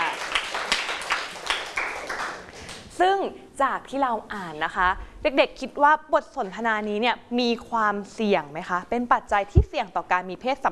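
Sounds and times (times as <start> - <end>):
classroom applause for a classmate: 0.0 - 2.8
speech: 3.0 - 10.6.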